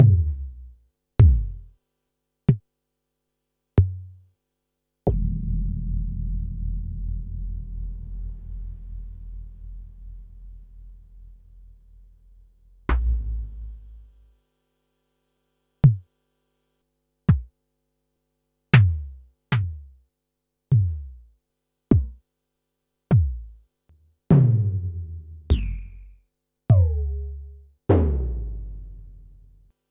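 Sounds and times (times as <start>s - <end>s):
Pearl SC-40 bass drum: 0.0s - 1.7s, 5.1s - 14.3s, 17.3s - 17.5s, 18.8s - 20.0s, 20.7s - 21.3s, 21.9s - 22.2s, 23.1s - 23.6s, 24.3s - 29.7s.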